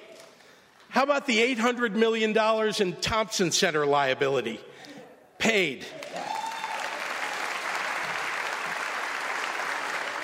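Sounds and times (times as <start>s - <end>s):
speech: 1.0s - 6.0s
workers applauding: 5.9s - 10.2s.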